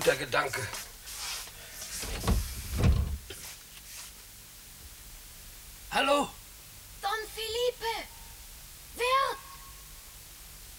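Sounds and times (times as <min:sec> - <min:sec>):
speech: 0:00.0 - 0:00.9
soft hiss: 0:00.0 - 0:10.7
window being opened in a 1957 German radio play: 0:01.9 - 0:03.4.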